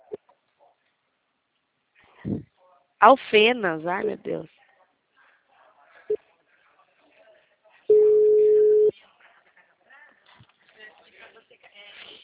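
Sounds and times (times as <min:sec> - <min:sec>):
speech: 0:02.3 - 0:04.6
telephone busy tone after a dropped call: 0:07.9 - 0:08.9.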